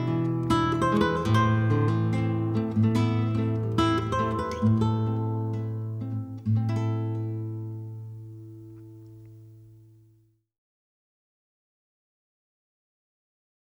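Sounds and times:
guitar: 0.0s - 10.2s.

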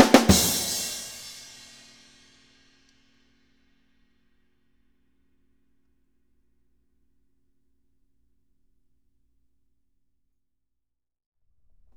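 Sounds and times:
drums playing in a dynamic drum test: 0.0s - 1.9s.

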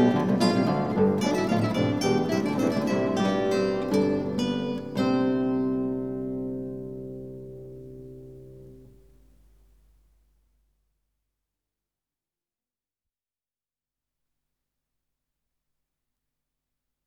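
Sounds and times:
guitar quartet playing an invention in B flat major: 0.0s - 9.2s.

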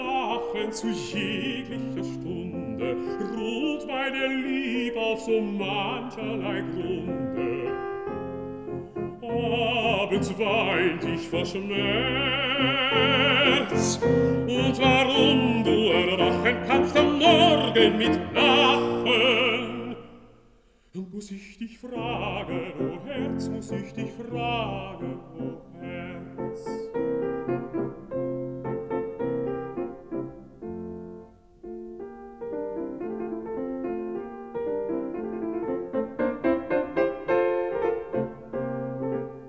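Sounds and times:
person singing: 0.0s - 20.4s, 21.0s - 27.4s
piano: 0.0s - 39.4s.

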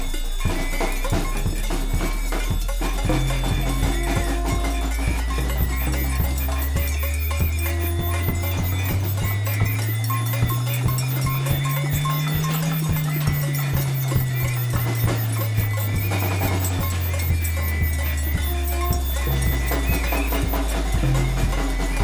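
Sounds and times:
special burn-in noise: 0.0s - 22.0s.

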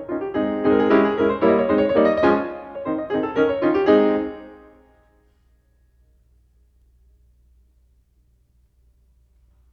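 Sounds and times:
mazurka on piano: 0.0s - 4.9s.

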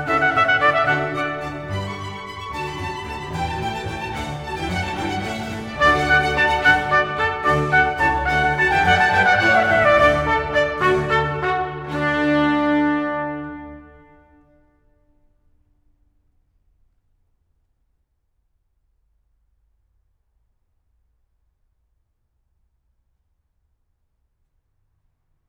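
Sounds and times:
trumpet and strings playing a concerto in D major: 0.0s - 15.0s.

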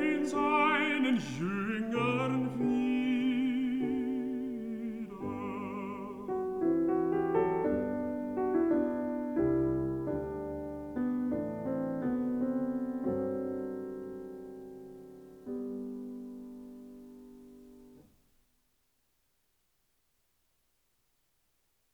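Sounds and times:
person singing: 0.0s - 7.5s
piano: 0.0s - 18.4s.

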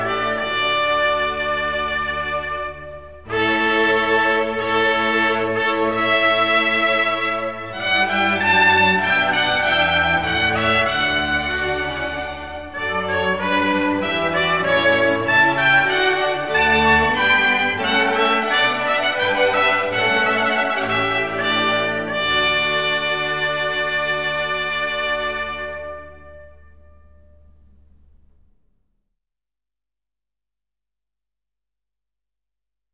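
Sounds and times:
suite for trumpet, strings and continuo in D major: 0.0s - 28.6s.

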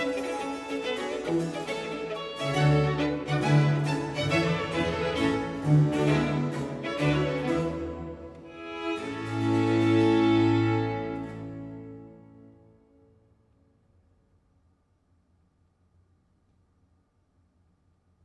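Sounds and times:
concerto grosso in B flat major: 0.0s - 12.9s.

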